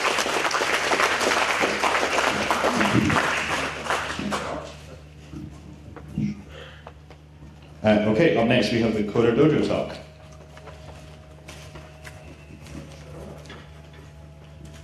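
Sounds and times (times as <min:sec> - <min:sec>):
audience applause: 0:00.0 - 0:04.9
speech: 0:07.8 - 0:10.0.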